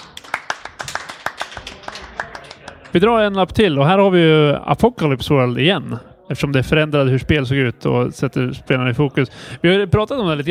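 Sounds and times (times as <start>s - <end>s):
applause: 0.0s - 3.1s
speech: 2.9s - 10.4s.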